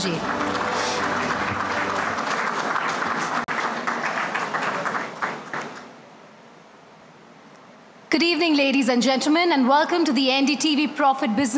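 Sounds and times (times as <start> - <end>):
speech: 0.0 - 0.6, 8.2 - 11.5
audience applause: 0.0 - 6.0.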